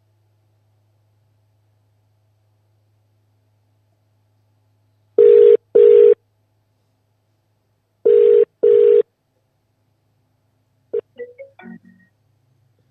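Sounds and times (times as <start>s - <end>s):
telephone ringback tone: 5.2s - 6.2s, 8.1s - 9.0s.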